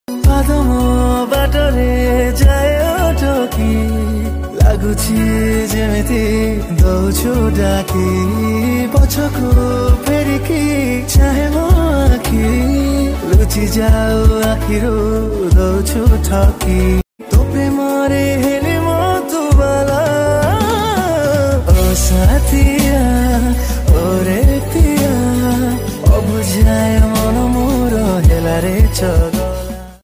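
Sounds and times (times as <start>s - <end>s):
Odia romantic song: 0.1s - 30.0s.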